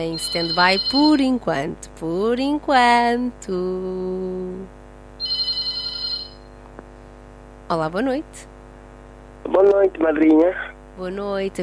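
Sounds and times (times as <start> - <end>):
telephone ringing with an incoming call to a radio phone-in: 0.0 - 1.3, 5.2 - 6.6
speech: 0.0 - 4.8, 7.7 - 8.5, 9.5 - 11.6.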